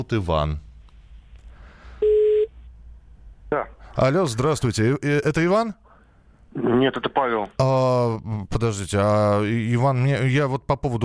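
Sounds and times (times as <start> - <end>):
speech: 0.0 - 0.7, 3.5 - 5.8, 6.5 - 11.0
telephone ringback beep: 2.0 - 2.5.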